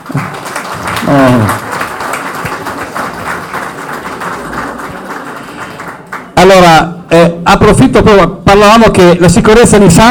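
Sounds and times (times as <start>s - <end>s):
audience applause: 0.0s - 6.4s
speech: 1.1s - 1.6s, 6.4s - 10.1s.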